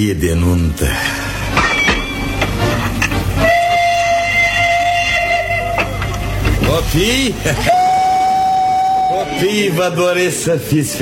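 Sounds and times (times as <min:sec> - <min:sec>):
speech: 0:00.0 - 0:01.2, 0:06.7 - 0:07.8, 0:09.4 - 0:11.0
train rumbling and clanking at a station: 0:01.0 - 0:07.8
train whistle: 0:03.4 - 0:06.6, 0:07.5 - 0:10.0.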